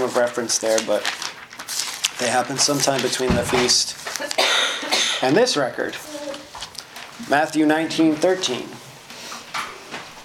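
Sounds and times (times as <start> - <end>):
speech: 0.1 - 1.3, 2.2 - 6.1, 7.2 - 8.8
sneeze: 4.4 - 5.3.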